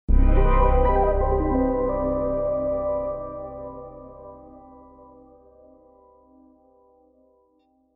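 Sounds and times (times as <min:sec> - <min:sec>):
melody: 0:00.1 - 0:05.4.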